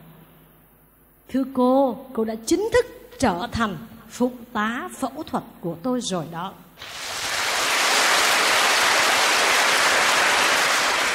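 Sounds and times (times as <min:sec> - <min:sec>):
speech: 0:01.3 - 0:07.0
audience applause: 0:06.8 - 0:11.1.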